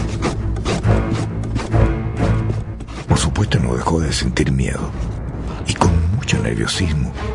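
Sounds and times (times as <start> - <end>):
scratching on a wooden door: 0.0 - 3.9
speech: 3.4 - 7.3.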